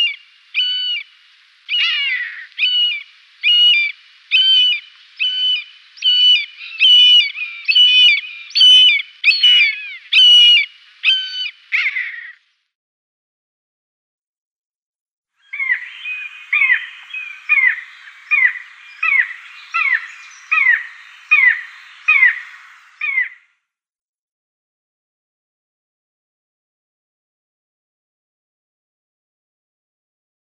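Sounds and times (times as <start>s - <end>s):
common buzzard calling: 1.7s - 12.4s, 15.5s - 23.4s.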